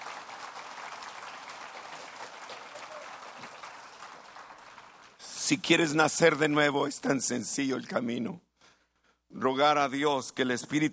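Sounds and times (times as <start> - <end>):
audience applause: 0.0 - 5.2
speech: 5.5 - 8.5, 9.4 - 10.9.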